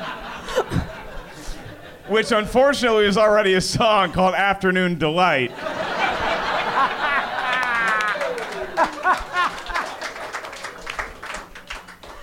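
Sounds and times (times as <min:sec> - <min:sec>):
audience laughter: 0:00.0 - 0:03.0, 0:05.5 - 0:12.2
speech: 0:02.1 - 0:05.8
audience clapping at a joke: 0:06.0 - 0:12.2
scattered cheers: 0:07.3 - 0:09.0.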